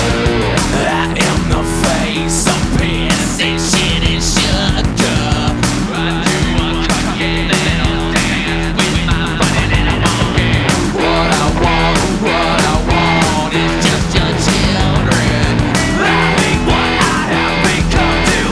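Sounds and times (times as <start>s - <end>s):
organ grinder barrel organ: 0.0s - 18.5s.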